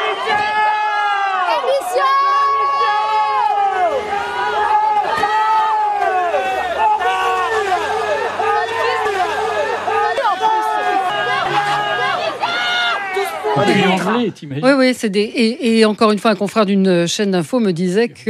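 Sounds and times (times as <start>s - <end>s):
crowd at Le Puy-en-Velay shouting slogans at a visiting official: 0.0s - 14.3s
speech: 13.6s - 18.2s.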